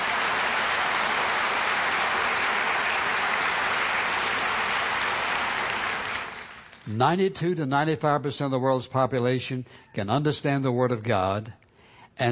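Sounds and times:
audience applause: 0.0s - 6.9s
speech: 6.9s - 11.6s.

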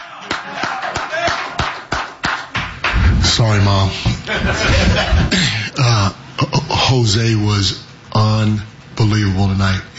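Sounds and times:
single person clapping slowly: 0.3s - 3.1s
speech: 3.4s - 9.9s
laughter: 4.1s - 5.5s.

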